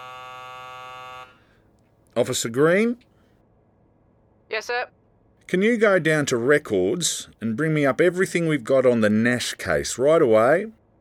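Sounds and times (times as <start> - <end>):
office phone intercom buzzing: 0.0 - 1.4
faint hiss: 0.0 - 10.8
speech: 2.2 - 3.1, 4.6 - 10.8.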